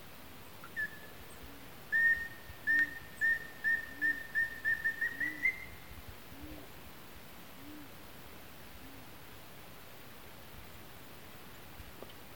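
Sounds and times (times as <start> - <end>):
Chestnut-naped antpitta Grallaria nuchalis ruficeps calling: 0.6 - 6.7.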